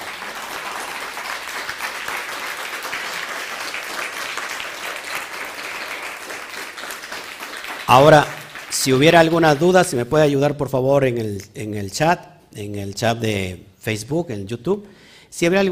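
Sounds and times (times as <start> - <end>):
audience applause: 0.0 - 9.9
speech: 7.9 - 15.7.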